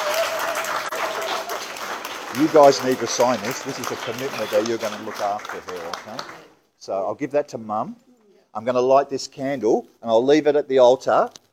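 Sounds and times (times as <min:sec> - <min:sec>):
crowd applause: 0:00.0 - 0:06.5
speech: 0:02.3 - 0:11.4.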